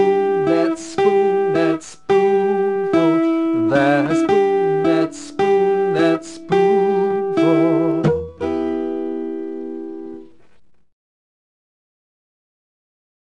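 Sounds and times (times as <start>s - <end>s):
guitar: 0.0s - 10.9s.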